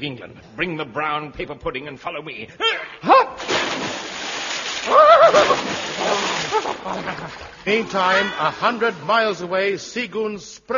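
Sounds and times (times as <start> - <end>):
speech: 0.0 - 3.5, 4.8 - 6.2, 6.8 - 10.7
splashes in water: 3.4 - 7.6
laughter: 4.8 - 9.5.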